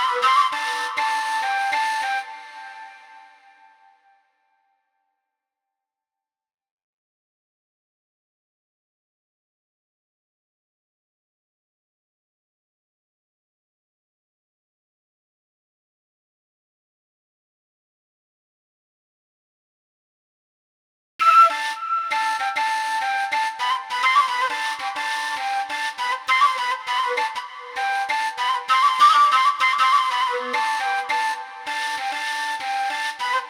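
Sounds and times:
flute: 0:00.0 - 0:04.2, 0:21.2 - 0:33.4.

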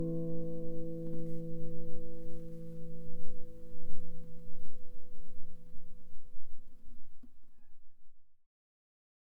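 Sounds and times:
guitar: 0:00.0 - 0:05.5.

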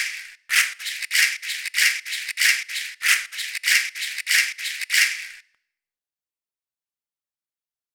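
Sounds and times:
African shakers: 0:00.0 - 0:05.4.

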